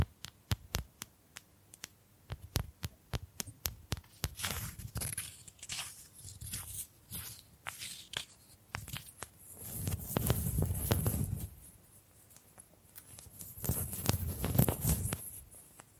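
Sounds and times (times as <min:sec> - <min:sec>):
bamboo tapped in quick uneven clicks: 0:00.0 - 0:04.4
scraping and brushing bursts: 0:04.0 - 0:15.8.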